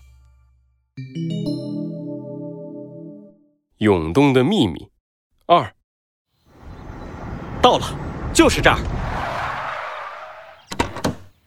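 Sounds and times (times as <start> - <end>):
speech: 3.8 - 4.9, 5.5 - 5.8, 7.6 - 9.0
off-road vehicle pulling up and stopping: 6.5 - 10.6.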